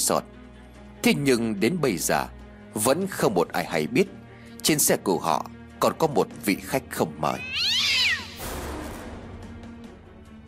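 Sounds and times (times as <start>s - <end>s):
speech: 0.1s - 0.4s, 1.0s - 8.0s
cat meowing: 7.3s - 8.4s.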